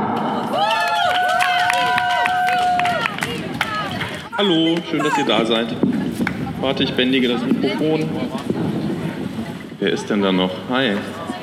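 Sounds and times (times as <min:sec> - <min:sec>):
crowd applause: 0:00.0 - 0:05.4
cheering voices: 0:00.0 - 0:05.6
sustained high whoop: 0:00.3 - 0:03.2
speech: 0:04.4 - 0:06.0, 0:06.6 - 0:08.8, 0:09.8 - 0:11.2.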